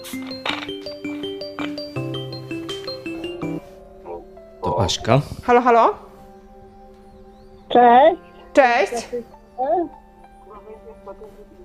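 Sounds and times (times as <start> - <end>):
phone ringing with incoming call: 0.0 - 4.0
speech: 0.1 - 0.6, 4.7 - 6.0, 7.8 - 10.0.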